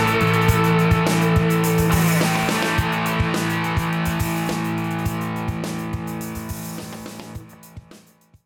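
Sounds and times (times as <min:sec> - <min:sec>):
DOD high gain distortion: 0:00.0 - 0:07.4.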